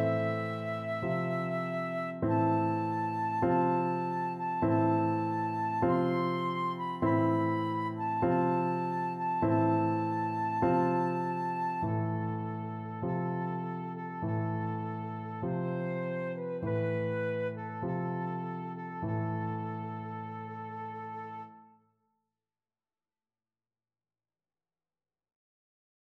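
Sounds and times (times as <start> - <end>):
flute playing a funeral march: 0.0 - 21.8.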